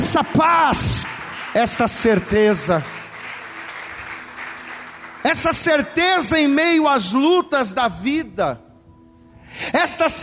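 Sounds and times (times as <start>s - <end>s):
audience applauding: 0.0s - 6.3s
speech: 0.2s - 3.0s, 5.2s - 8.6s, 9.5s - 10.2s.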